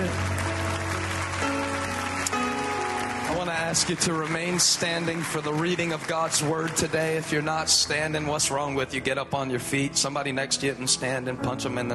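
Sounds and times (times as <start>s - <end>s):
audience clapping hands: 0.0s - 8.0s
speech: 3.7s - 11.9s.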